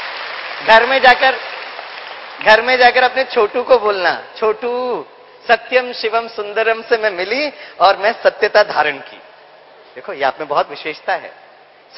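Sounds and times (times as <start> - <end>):
audience clapping: 0.0 - 3.2
speech: 0.6 - 1.5, 2.4 - 9.2, 10.0 - 11.9.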